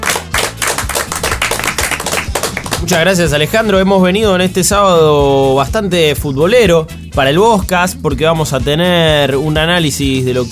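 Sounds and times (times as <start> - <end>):
quick studio applause for an editor: 0.0 - 3.0
speech: 2.9 - 10.4.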